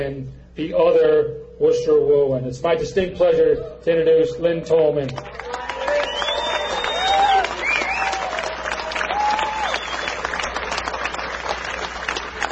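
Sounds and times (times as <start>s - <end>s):
speech: 0.0s - 5.4s
audience applause: 5.2s - 12.5s.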